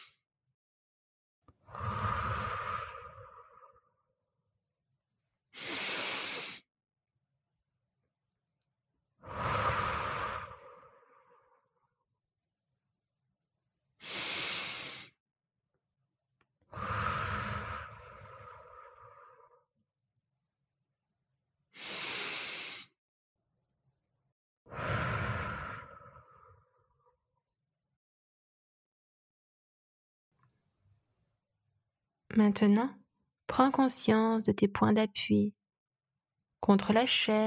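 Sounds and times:
deep breaths during relaxation exercise: 1.6s - 4.1s, 5.5s - 6.7s, 9.2s - 11.8s, 14.0s - 15.2s, 16.7s - 19.7s, 21.7s - 23.0s, 24.7s - 27.0s
speech: 32.4s - 35.6s, 36.6s - 37.4s.

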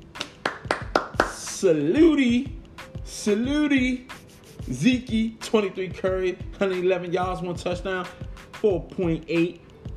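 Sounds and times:
hand clapping: 0.0s - 1.6s
speech: 1.6s - 4.1s, 4.7s - 9.6s.

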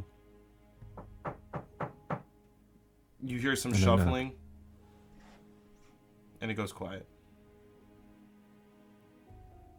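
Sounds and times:
knocking on a wooden door: 0.8s - 2.3s
speech: 3.2s - 4.4s, 6.4s - 7.1s.

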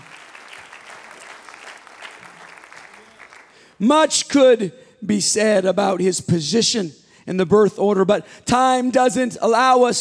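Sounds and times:
audience hand clap applause: 0.0s - 3.8s
speech: 3.8s - 10.0s.

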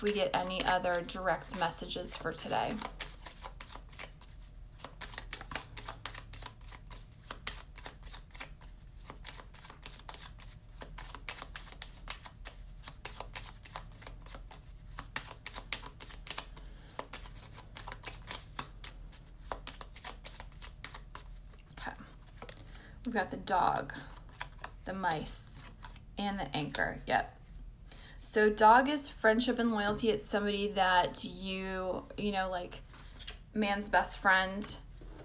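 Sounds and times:
speech: 0.0s - 3.0s, 23.5s - 24.1s, 24.9s - 25.4s, 26.2s - 27.4s, 28.4s - 32.9s, 33.5s - 34.8s
Lenormand oracle cards being shuffled: 0.0s - 26.0s, 32.8s - 33.4s.

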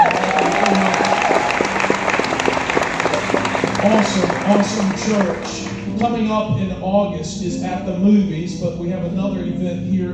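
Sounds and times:
faint voices and cheers: 0.0s - 5.4s
church audience applauding: 0.0s - 6.1s
speech: 5.0s - 10.1s.

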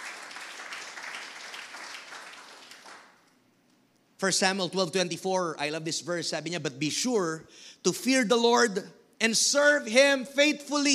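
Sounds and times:
applause from a church congregation: 0.0s - 3.3s
speech: 4.2s - 10.9s.

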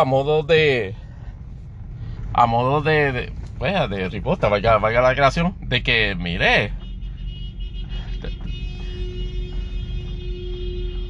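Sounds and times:
speech: 0.0s - 1.0s, 2.4s - 6.8s
car horns honking: 6.0s - 11.0s.

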